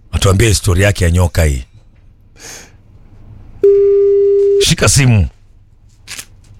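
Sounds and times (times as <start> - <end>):
speech: 0.2 - 1.7, 4.6 - 5.4
telephone line tone while calling someone: 3.6 - 4.7.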